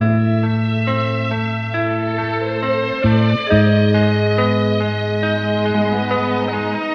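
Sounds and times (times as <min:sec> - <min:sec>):
string loops: 0:00.0 - 0:06.9.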